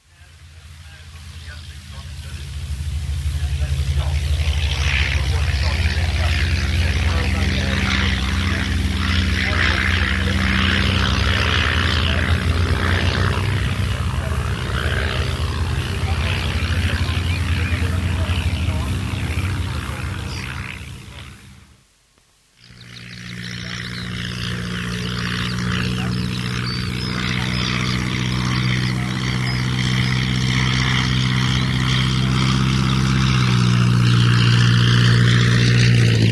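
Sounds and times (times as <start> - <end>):
red and yellow SK-11 Tiger Moth biplane propeller engine in flight: 0.0 - 21.9, 22.6 - 36.3.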